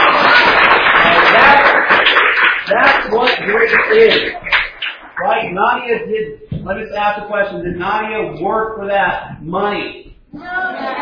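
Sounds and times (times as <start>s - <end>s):
audience applause during a church sermon: 0.0s - 5.2s
speech: 3.9s - 4.4s, 5.5s - 11.0s.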